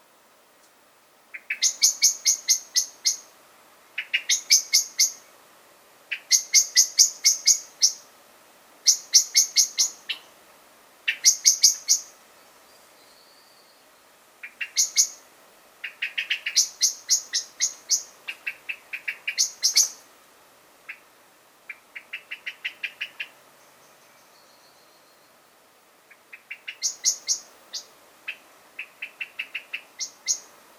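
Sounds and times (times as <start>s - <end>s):
common blackbird chink calls: 1.3s - 3.3s, 4.0s - 5.3s, 6.1s - 8.1s, 8.8s - 10.4s, 11.1s - 13.8s, 14.4s - 15.2s, 15.8s - 20.1s, 20.8s - 21.1s, 21.7s - 25.4s, 26.1s - 30.6s.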